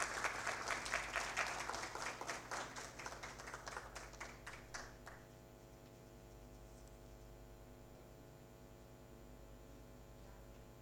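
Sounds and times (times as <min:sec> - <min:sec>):
audience applause at the Premio Hambre Cero Paraguay 2021 award ceremony: 0:00.0 - 0:05.2.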